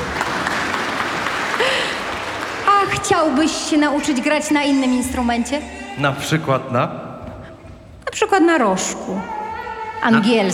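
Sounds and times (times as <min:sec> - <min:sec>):
applause for a guitar player during an orchestra session: 0:00.0 - 0:03.2
speech: 0:03.0 - 0:07.0, 0:08.1 - 0:09.4, 0:10.0 - 0:10.5.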